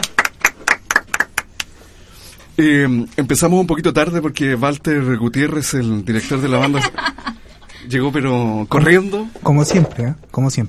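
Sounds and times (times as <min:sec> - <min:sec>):
hand claps for a band from Maipú: 0:00.0 - 0:01.8
speech: 0:02.6 - 0:07.2, 0:07.8 - 0:10.6
laughter: 0:06.2 - 0:07.8.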